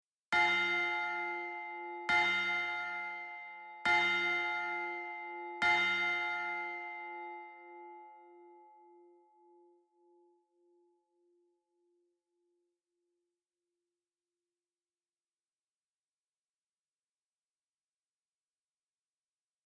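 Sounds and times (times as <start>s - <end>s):
bell: 0.3s - 12.6s.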